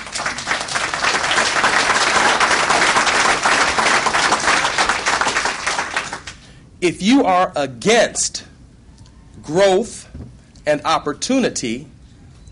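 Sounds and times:
crowd applause: 0:00.0 - 0:06.5
speech: 0:06.8 - 0:08.5, 0:09.4 - 0:12.5.

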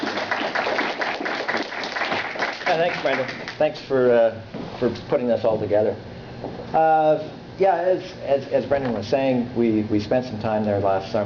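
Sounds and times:
audience clapping to thank a speaker: 0:00.0 - 0:03.7
speech: 0:02.7 - 0:11.2.

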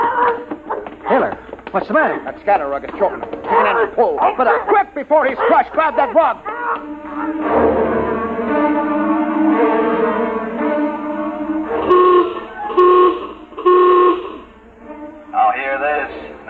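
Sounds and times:
speech: 0:01.1 - 0:06.5
general alarm horn blaring: 0:06.8 - 0:16.4.

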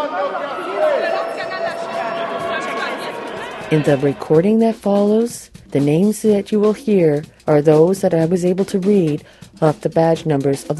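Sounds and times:
crowd booing: 0:00.0 - 0:04.6
speech: 0:03.7 - 0:10.7.

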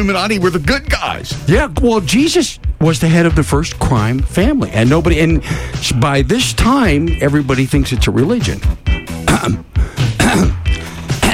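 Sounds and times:
speech: 0:00.0 - 0:10.6
man clearing throat: 0:08.9 - 0:11.3.

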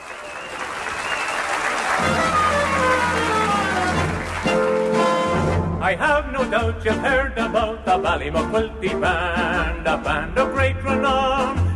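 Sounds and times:
audience applause: 0:00.0 - 0:05.6
speech: 0:05.9 - 0:11.6.

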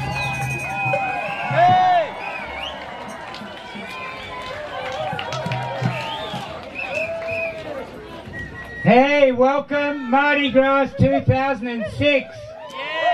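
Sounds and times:
crowd at Mardi Gras 2006 cheering and babbling: 0:00.0 - 0:13.1
speech: 0:08.9 - 0:12.5.

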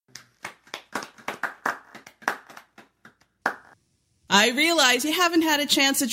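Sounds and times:
sparse scattered applause: 0:00.1 - 0:03.8
speech: 0:04.4 - 0:06.1.

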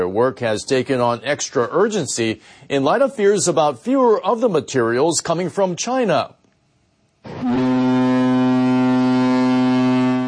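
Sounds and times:
speech: 0:00.1 - 0:06.4, 0:07.2 - 0:08.0
horn of departing drilling ship: 0:07.2 - 0:10.2.

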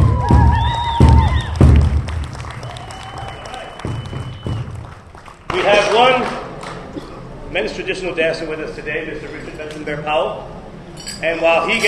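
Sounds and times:
round of applause: 0:00.0 - 0:06.9
speech: 0:07.8 - 0:10.5, 0:11.2 - 0:11.8.

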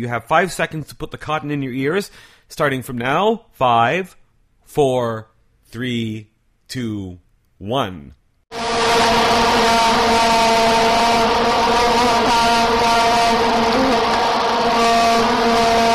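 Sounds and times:
speech: 0:00.0 - 0:08.2
vuvuzelas droning: 0:08.5 - 0:15.9.

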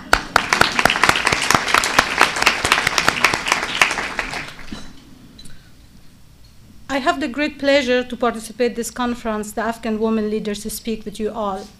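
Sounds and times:
audience applause: 0:00.0 - 0:04.8
speech: 0:07.0 - 0:11.7.

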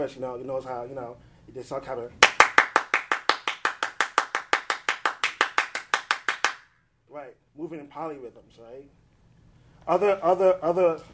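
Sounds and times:
speech: 0:00.0 - 0:02.4, 0:07.2 - 0:09.0, 0:09.8 - 0:11.1
hand clapping as percussion: 0:02.2 - 0:06.7.

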